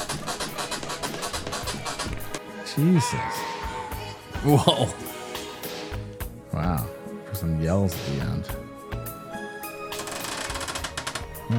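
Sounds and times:
squeaky bed sound effect: 0.0 - 2.4, 10.0 - 11.5
speech: 2.8 - 3.5, 4.4 - 5.1, 6.6 - 8.6
laughter: 4.3 - 5.2.

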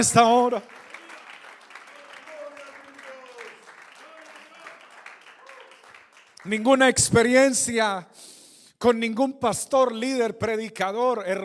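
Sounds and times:
speech: 0.0 - 0.9, 6.4 - 11.4
audience applause: 0.0 - 6.6.

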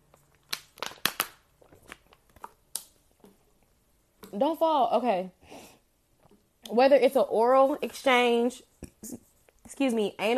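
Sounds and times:
thin plastic water bottle crinkling: 0.0 - 4.4
speech: 4.3 - 5.4, 6.7 - 9.2, 9.8 - 10.3.

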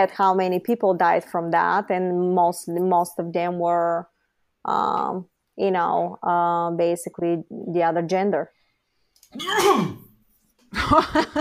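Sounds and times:
speech: 0.0 - 8.6, 9.3 - 10.0, 10.7 - 11.4
person sneezing: 9.4 - 10.2.

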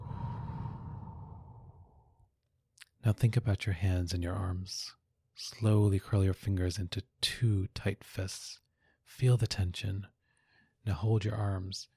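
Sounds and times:
slow soft exhale during a guided relaxation breathing exercise: 0.0 - 2.2
speech: 3.0 - 10.2, 10.8 - 11.9.

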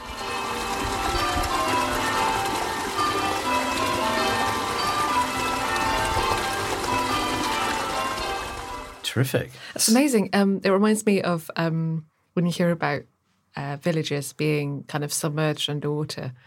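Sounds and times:
church bells ringing: 0.0 - 9.0
village stream flowing: 0.0 - 9.0
speech: 9.2 - 16.4.

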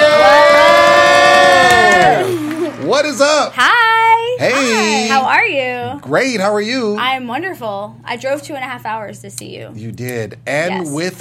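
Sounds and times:
studio audience cheering for an in-studio guest: 0.0 - 3.6
speech: 3.0 - 3.8, 4.4 - 11.2.

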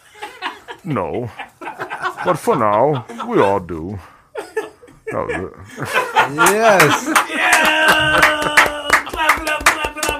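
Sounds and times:
laughter: 0.0 - 10.1
speech: 0.8 - 1.6, 2.2 - 4.1, 5.1 - 7.2
hands clapping hard: 6.4 - 10.1.

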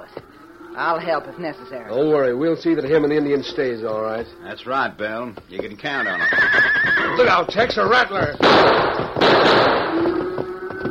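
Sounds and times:
speech: 0.8 - 9.7
gunshots: 8.4 - 10.1.

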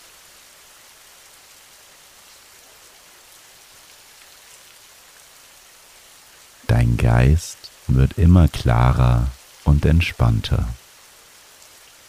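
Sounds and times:
gentle rain falling steadily: 0.0 - 12.0
speech: 6.8 - 10.8.

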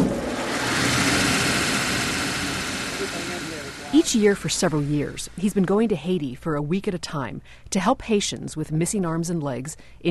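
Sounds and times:
workshop grinder running: 0.0 - 5.8
speech: 4.0 - 10.0.

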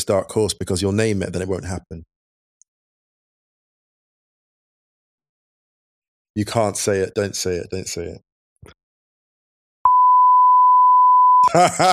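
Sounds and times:
speech: 0.0 - 2.1, 6.4 - 8.8, 11.5 - 11.9
censor bleep: 9.9 - 11.6
laughter: 11.4 - 11.9.

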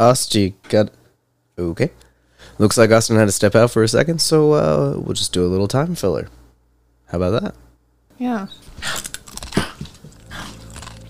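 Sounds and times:
speech: 0.0 - 1.0, 1.6 - 6.4, 7.1 - 7.6, 8.2 - 9.2
person biting and chewing food into a microphone: 8.7 - 11.0.

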